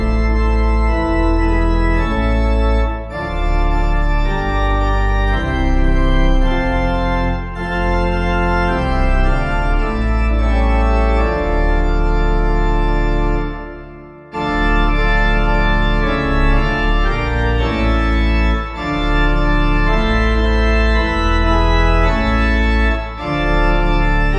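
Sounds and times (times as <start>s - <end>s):
organ playing a hymn: 0.0s - 24.3s.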